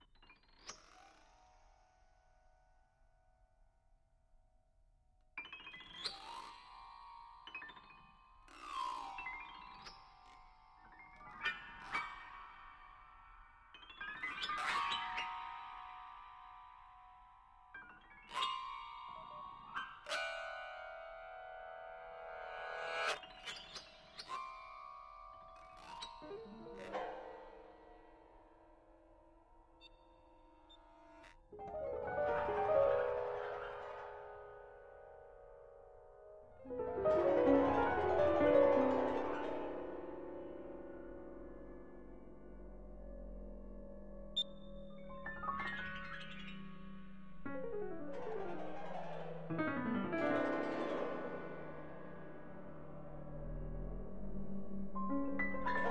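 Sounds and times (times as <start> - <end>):
piano etudes with electronics: 5.4 - 27.6, 30.6 - 55.8.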